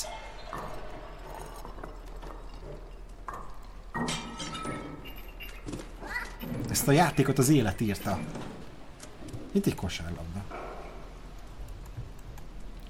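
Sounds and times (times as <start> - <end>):
glass beer bottles knocked over by a cat clattering together: 0.3 - 9.0
speech: 6.8 - 8.5, 9.5 - 10.5.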